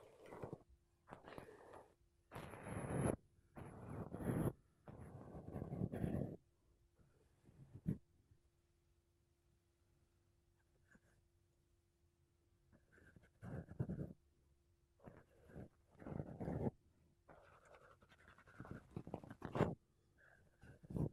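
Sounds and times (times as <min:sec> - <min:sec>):
makeup brushes and a sponge rubbing across a microphone: 0:00.0 - 0:06.4, 0:13.0 - 0:14.2, 0:15.0 - 0:21.1.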